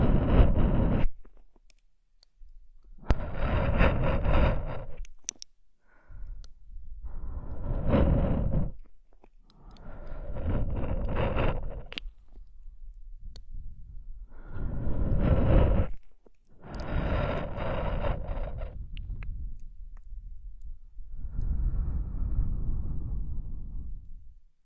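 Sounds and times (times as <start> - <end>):
slow soothing breathing and blowing: 0.0 - 1.3, 3.0 - 5.1, 5.8 - 8.9, 9.5 - 12.1, 13.5 - 19.6, 21.0 - 24.2.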